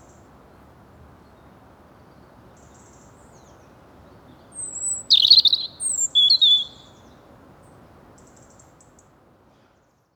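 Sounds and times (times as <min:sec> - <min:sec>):
faint low background hiss: 0:00.0 - 0:10.1
European robin song: 0:01.2 - 0:07.2.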